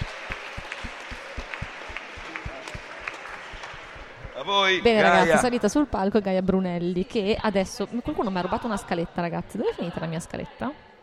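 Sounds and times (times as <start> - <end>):
audience applause: 0.0 - 4.4
speech: 4.5 - 10.9.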